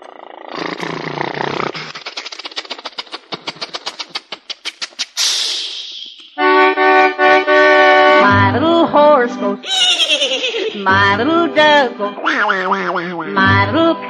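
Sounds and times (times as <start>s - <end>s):
buzzy honking tone: 6.4s - 8.6s
voice imitating a car engine: 8.1s - 9.8s, 10.7s - 14.0s
laughter: 9.6s - 11.1s
speech: 10.8s - 14.0s.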